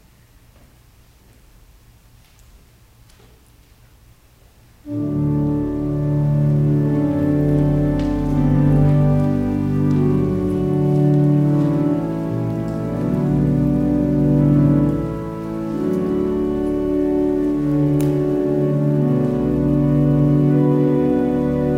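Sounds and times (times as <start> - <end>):
organ music: 4.8 - 21.7.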